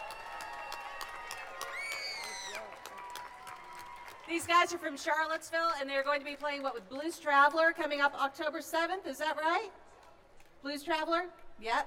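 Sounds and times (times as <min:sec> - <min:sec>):
audience applause: 0:00.0 - 0:04.9
speech: 0:04.3 - 0:09.8, 0:10.6 - 0:11.8.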